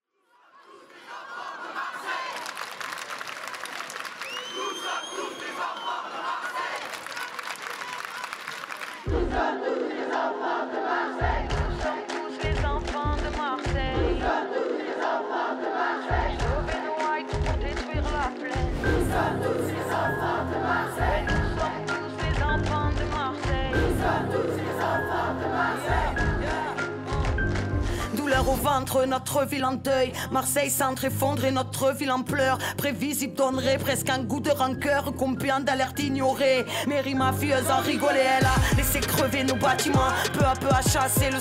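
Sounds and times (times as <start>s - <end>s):
song with crowd chanting: 0.6s - 2.6s, 4.3s - 7.4s, 8.9s - 28.5s, 37.7s - 41.3s
speech: 28.4s - 41.3s.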